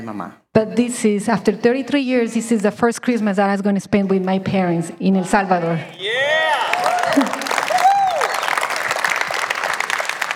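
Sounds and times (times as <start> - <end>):
speech: 0.0 - 6.5, 7.1 - 7.5
audience applause at a talk: 6.0 - 10.3.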